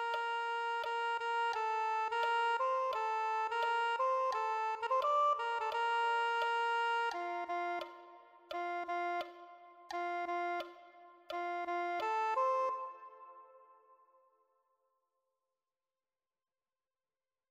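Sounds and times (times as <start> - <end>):
soprano saxophone: 0.0 - 13.9.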